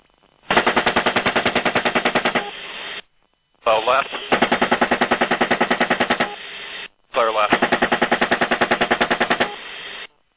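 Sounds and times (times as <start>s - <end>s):
heavy automatic gunfire from a helicopter gun: 0.5s - 2.6s, 4.3s - 6.4s, 7.3s - 9.7s
speech: 3.7s - 4.4s.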